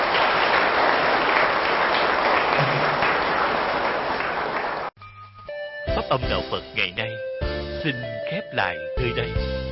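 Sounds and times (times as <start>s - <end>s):
large crowd applause: 0.0s - 4.9s
speech: 6.1s - 9.6s.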